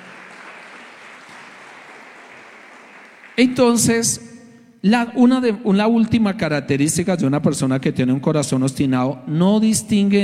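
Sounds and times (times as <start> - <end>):
audience applause: 0.0 - 3.4
speech: 3.4 - 10.2.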